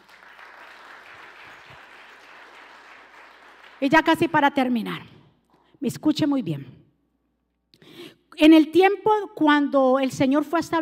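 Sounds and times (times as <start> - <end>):
audience applause: 0.0 - 3.8
speech: 3.8 - 5.1, 5.8 - 6.8, 8.4 - 10.8.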